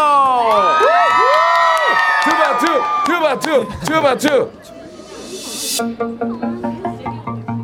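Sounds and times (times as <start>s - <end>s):
audience cheering: 0.0s - 4.3s
audience applause: 0.5s - 3.9s
speech: 2.8s - 4.8s, 5.8s - 7.4s.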